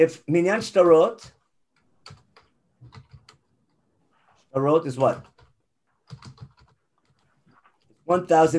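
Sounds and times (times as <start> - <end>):
speech: 0.0 - 1.4, 4.5 - 5.3, 8.1 - 8.5
faint keystrokes on a computer keyboard: 1.0 - 3.8, 5.0 - 7.6.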